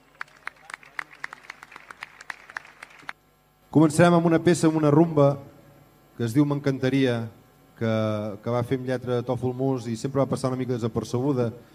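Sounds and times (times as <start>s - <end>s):
audience applause: 0.0s - 3.2s
speech: 3.7s - 5.5s, 6.2s - 11.7s.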